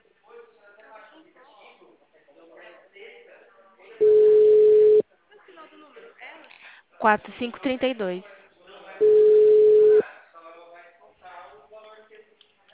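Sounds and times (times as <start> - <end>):
telephone tone while a call is being placed: 4.0 - 5.0, 9.0 - 10.0
speech: 7.0 - 8.4.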